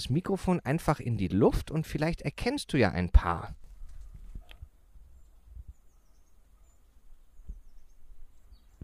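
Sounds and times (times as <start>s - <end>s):
speech: 0.0s - 3.6s
great tit singing: 5.2s - 8.8s.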